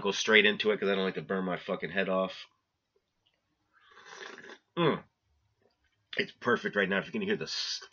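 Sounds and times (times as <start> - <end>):
speech: 0.0 - 2.6, 4.8 - 5.1, 6.1 - 7.9
throaty satisfied exhale: 3.8 - 4.6
slurping a sip of hot coffee: 3.8 - 4.7.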